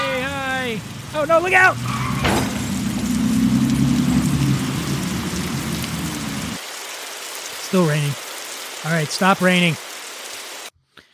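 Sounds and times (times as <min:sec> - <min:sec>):
speech: 0:00.8 - 0:02.6, 0:07.7 - 0:08.2, 0:08.8 - 0:09.9
car driving past: 0:00.9 - 0:06.6.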